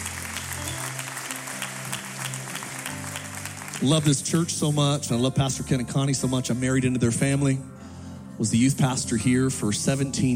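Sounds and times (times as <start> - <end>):
audience applause: 0.0 - 4.5
speech: 3.8 - 7.8, 8.4 - 10.3.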